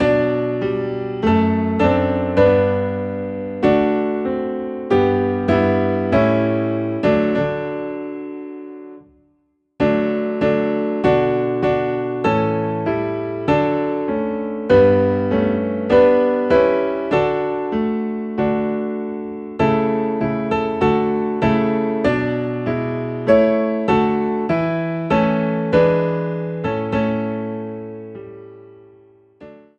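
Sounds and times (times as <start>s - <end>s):
piano piece in D: 0.0s - 29.7s.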